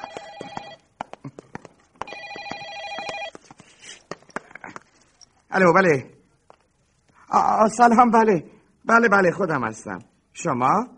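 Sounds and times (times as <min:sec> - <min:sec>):
telephone ringing: 0:00.0 - 0:01.0, 0:02.0 - 0:03.4
speech: 0:05.5 - 0:06.2, 0:07.4 - 0:10.9.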